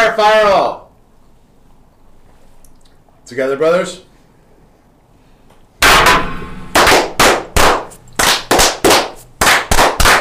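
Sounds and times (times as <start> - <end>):
speech: 0.2 - 0.8, 3.3 - 4.1
group clapping in unison: 6.7 - 10.1.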